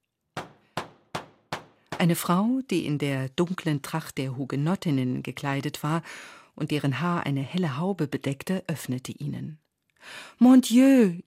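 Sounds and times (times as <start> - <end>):
knocking on a door: 0.4 - 2.2
speech: 2.0 - 11.2.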